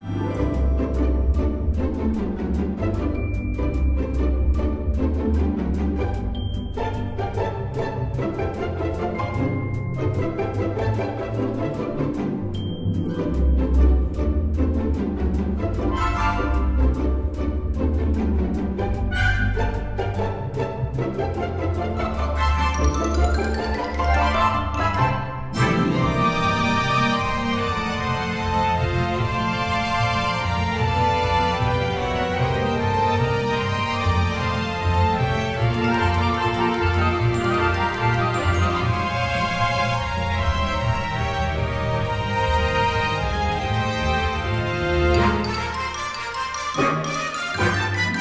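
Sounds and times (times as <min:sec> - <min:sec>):
comedy background music: 0:00.0 - 0:48.1.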